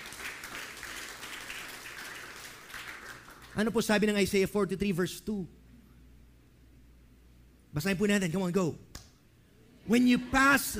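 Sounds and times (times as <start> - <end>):
church congregation at The Rock City Church clapping: 0.0 - 4.2
speech: 3.6 - 5.6, 7.8 - 8.9, 9.9 - 10.7.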